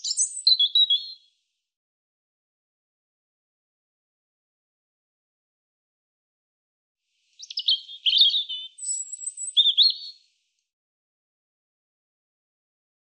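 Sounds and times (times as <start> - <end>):
European robin singing: 0.0 - 1.3, 7.4 - 10.2.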